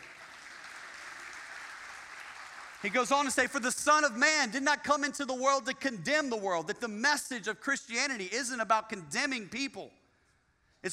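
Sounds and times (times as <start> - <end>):
audience clapping: 0.0 - 3.5
speech: 2.8 - 10.0.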